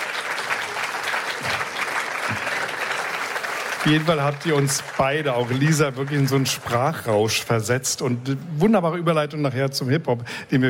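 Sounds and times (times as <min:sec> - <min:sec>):
audience applause: 0:00.0 - 0:07.7
speech: 0:03.8 - 0:10.6.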